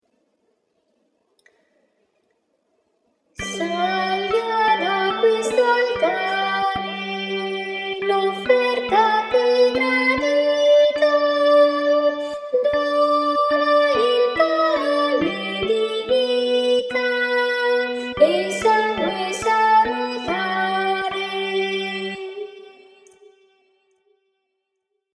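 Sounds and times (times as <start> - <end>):
sopranos singing: 3.4 - 23.1.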